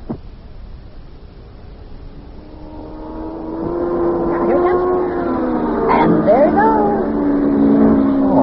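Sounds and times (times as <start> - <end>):
race car speeding past on the track: 2.2 - 8.4.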